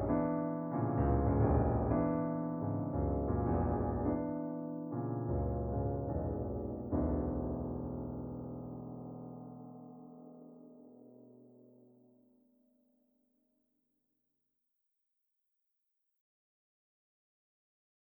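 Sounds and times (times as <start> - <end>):
solo piano improvisation: 0.0 - 11.4.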